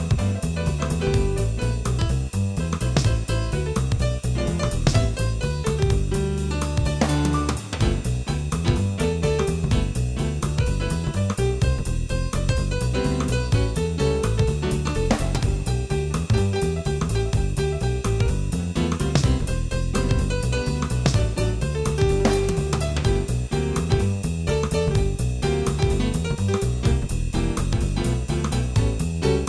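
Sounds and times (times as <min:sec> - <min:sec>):
pianist playing piano: 0:00.0 - 0:29.4.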